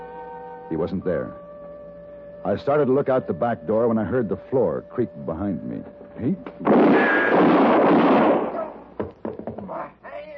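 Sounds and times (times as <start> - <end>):
speech: 0.7 - 1.4, 2.4 - 8.2
gunshot: 6.6 - 8.9.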